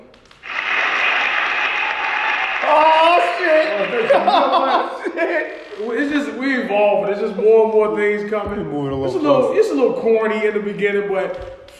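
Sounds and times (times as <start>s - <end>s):
applause: 0.3s - 4.9s
laughter: 0.4s - 7.8s
speech: 2.7s - 11.7s.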